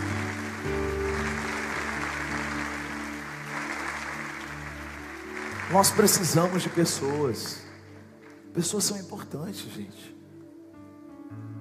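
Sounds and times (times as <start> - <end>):
audience applause: 0.0 - 9.0
speech: 5.7 - 7.6, 8.5 - 10.2.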